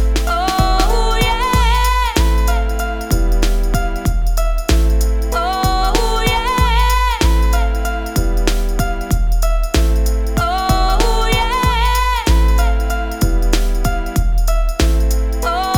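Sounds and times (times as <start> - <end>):
vocals with sidechain compression: 0.0 - 15.7.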